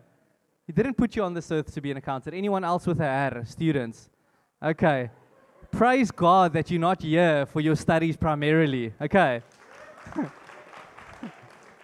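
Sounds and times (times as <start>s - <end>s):
speech: 0.7s - 10.4s
audience applause: 9.4s - 11.8s
voices whooping: 9.6s - 11.8s.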